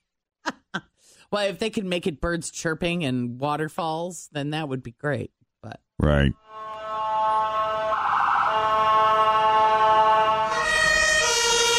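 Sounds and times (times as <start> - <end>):
speech: 1.3 - 6.8
European emergency vehicle siren: 6.5 - 11.7.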